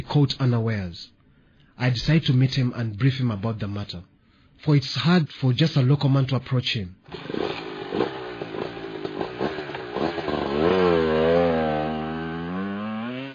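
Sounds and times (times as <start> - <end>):
speech: 0.1 - 1.2, 1.8 - 7.4
old red motorcycle being kickstarted and revving: 7.1 - 13.3.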